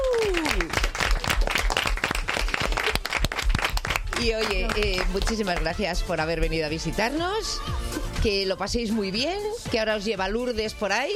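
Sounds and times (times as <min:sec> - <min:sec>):
group applauding: 0:00.0 - 0:05.8
speech: 0:04.2 - 0:11.1.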